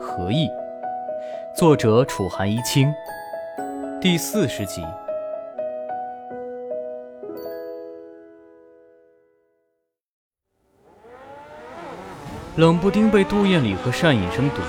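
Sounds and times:
speech: 0.1s - 0.6s, 1.6s - 3.2s, 4.0s - 5.0s, 12.6s - 14.6s
motorcycle engine revving: 10.6s - 14.6s.

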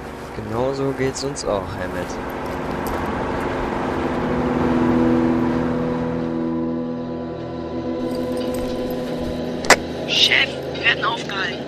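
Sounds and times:
car engine accelerating during a chase: 0.0s - 11.6s
speech: 0.4s - 2.5s.

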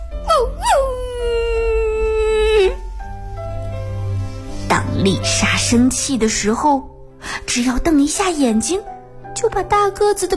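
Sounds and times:
frightened stray dog whimpering and howling in a park: 0.3s - 2.8s
speech: 5.0s - 10.3s.

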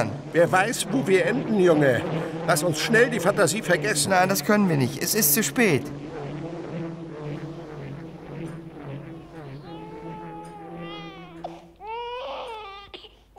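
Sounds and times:
speech: 0.0s - 6.2s
low steady hum: 0.0s - 13.2s
child crying in a dramatized household scene: 9.6s - 13.3s.

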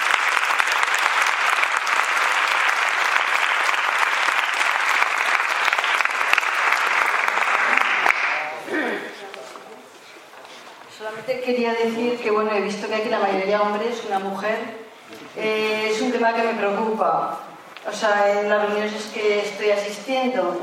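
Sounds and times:
audience applause: 0.0s - 8.6s
speech: 11.3s - 14.8s, 15.4s - 20.6s.

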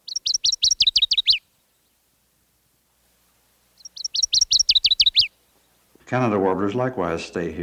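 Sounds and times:
northern waterthrush ringing song: 0.0s - 2.0s, 3.8s - 5.9s
speech: 6.1s - 7.6s.

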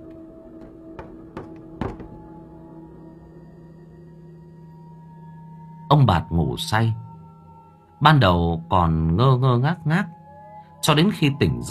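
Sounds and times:
knocking on a door: 0.5s - 2.4s
speech: 5.9s - 7.0s, 8.0s - 10.2s, 10.8s - 11.6s.

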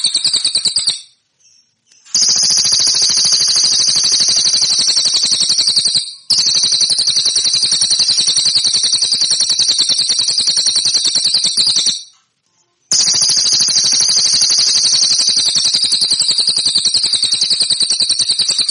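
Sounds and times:
song: 0.0s - 12.2s, 12.9s - 18.7s.

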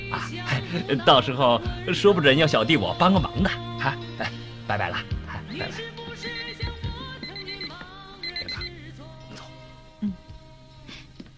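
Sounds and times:
speech: 0.1s - 6.4s
telephone ringing: 6.4s - 8.8s.

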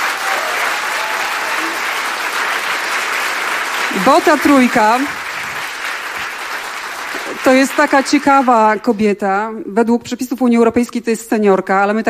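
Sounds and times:
audience applause: 0.0s - 8.8s
speech: 4.0s - 5.2s, 7.4s - 12.0s.

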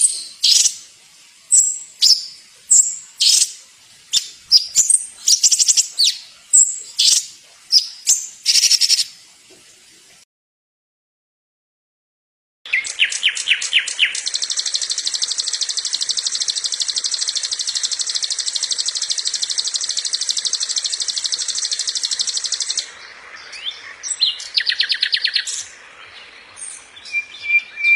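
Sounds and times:
songbird masteran song with squeaky chattering and sharp chirps: 0.0s - 0.8s, 1.5s - 9.1s, 12.7s - 25.7s.

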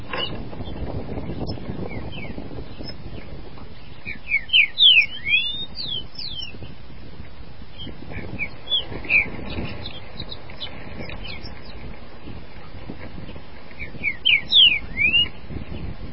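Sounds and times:
green-winged saltator song: 1.4s - 3.0s, 3.8s - 6.7s, 7.8s - 11.8s, 13.8s - 15.9s.

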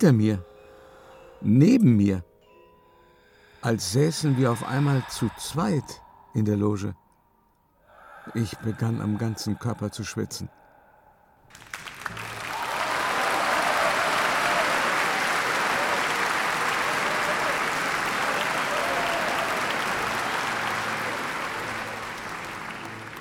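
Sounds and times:
speech: 0.0s - 0.5s, 1.4s - 2.3s, 3.6s - 7.0s, 8.3s - 10.6s
thunderous theatre audience applause: 11.5s - 23.1s.

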